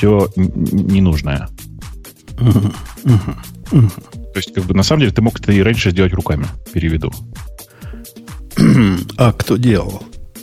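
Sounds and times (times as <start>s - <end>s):
speech: 0.0s - 1.7s, 2.4s - 7.6s, 8.6s - 10.1s
cough: 2.4s - 4.1s, 8.5s - 9.2s.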